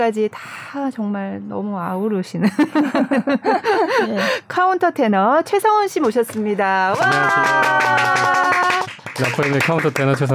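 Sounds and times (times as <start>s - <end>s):
speech: 0.0s - 8.4s, 9.2s - 10.3s
laughter: 2.5s - 4.2s
applause: 6.9s - 10.3s.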